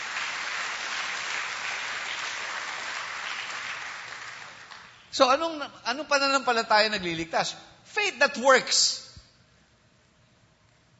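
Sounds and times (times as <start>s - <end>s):
audience applause: 0.0s - 5.0s
speech: 5.2s - 9.0s.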